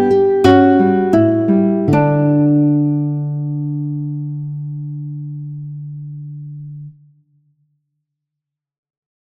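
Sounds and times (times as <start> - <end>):
guitar: 0.0 - 7.3.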